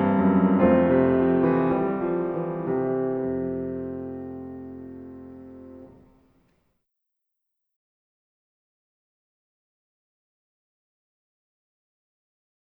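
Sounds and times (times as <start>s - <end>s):
musical accompaniment: 0.0s - 6.1s.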